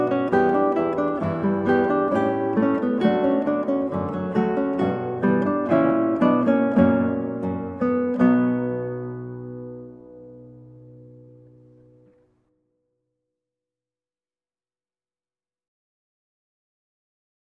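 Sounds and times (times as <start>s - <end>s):
guitar piece: 0.0s - 12.6s.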